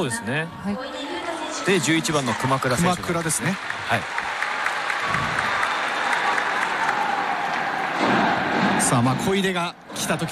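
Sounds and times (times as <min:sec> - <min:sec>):
speech: 0:00.0 - 0:04.2, 0:08.8 - 0:10.3
stadium crowd applause for a substitute entering a football match: 0:01.2 - 0:09.4.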